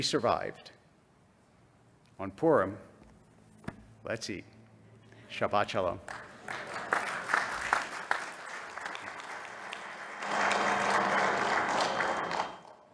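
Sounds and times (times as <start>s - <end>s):
speech: 0.0s - 0.7s, 2.2s - 2.9s, 4.0s - 4.5s, 5.3s - 6.7s
audience applause: 6.1s - 12.8s.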